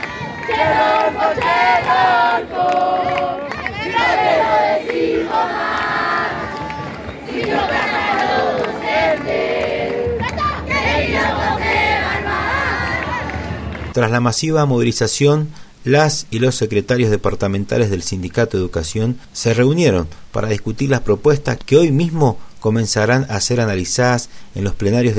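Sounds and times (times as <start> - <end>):
students chanting slogans in street protest: 0.0 - 13.4
speech: 14.0 - 25.1.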